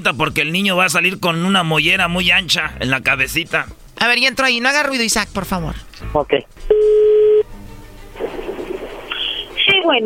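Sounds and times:
speech: 0.0s - 7.0s, 9.8s - 10.0s
telephone dialing tone: 6.7s - 7.4s
line hiss: 8.3s - 9.7s.

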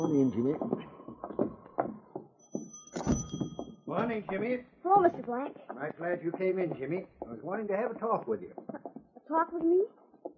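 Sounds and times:
speech: 0.1s - 1.5s, 4.0s - 10.0s
door being opened: 2.9s - 3.7s.

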